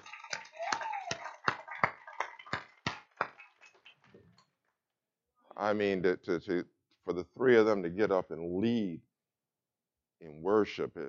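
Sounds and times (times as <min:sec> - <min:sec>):
audience applause for youth: 0:00.0 - 0:04.0
speech: 0:05.6 - 0:09.1, 0:10.2 - 0:11.0.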